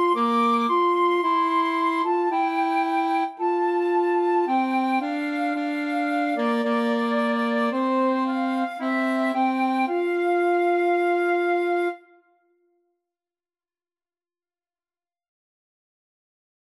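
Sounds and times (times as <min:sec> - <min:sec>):
alto saxophone: 0:00.0 - 0:12.1
brass flute: 0:00.0 - 0:12.4.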